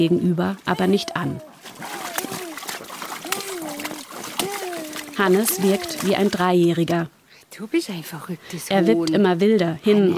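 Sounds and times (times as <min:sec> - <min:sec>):
speech: 0:00.0 - 0:01.5, 0:05.2 - 0:10.1
child splashing in paddling pool water: 0:00.6 - 0:06.9.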